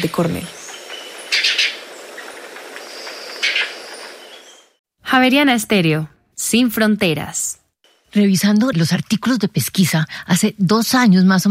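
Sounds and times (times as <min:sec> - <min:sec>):
speech: 0:00.0 - 0:00.6, 0:05.1 - 0:07.5, 0:08.1 - 0:11.4
ochre guayabero bird trilling: 0:00.2 - 0:04.8.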